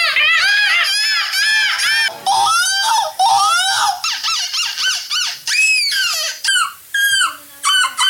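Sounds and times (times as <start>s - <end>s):
people imitating seagull screeches: 0.0s - 8.0s.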